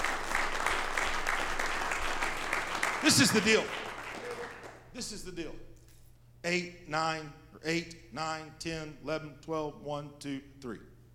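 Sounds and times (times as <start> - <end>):
church congregation clapping hands in a steady rhythm: 0.0 - 5.0
speech: 3.0 - 3.8, 5.0 - 5.7, 6.4 - 10.9.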